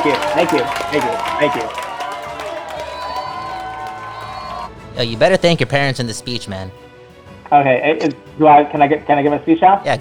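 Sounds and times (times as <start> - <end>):
speech: 0.0 - 1.9, 5.0 - 6.8, 7.5 - 9.9
applause sound effect from soundboard button: 0.0 - 4.7.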